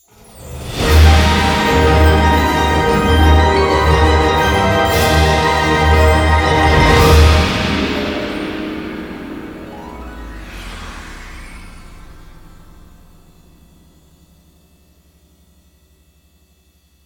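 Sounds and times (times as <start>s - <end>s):
big win jingle: 0.1s - 10.6s.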